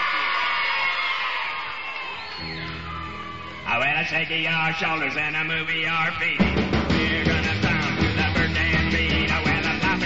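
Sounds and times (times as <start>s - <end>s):
large crowd yelling and cheering: 0.0s - 10.0s
speech: 4.1s - 6.8s.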